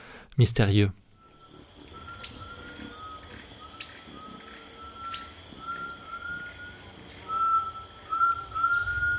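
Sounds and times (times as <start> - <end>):
speech: 0.4 - 1.0
sharp bird chirps: 1.2 - 9.1
steady high insect drone in a forest: 1.2 - 9.1.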